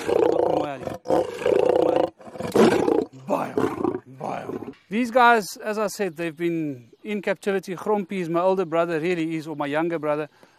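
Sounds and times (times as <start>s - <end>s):
big cat roaring: 0.0s - 4.8s
speech: 4.9s - 10.5s.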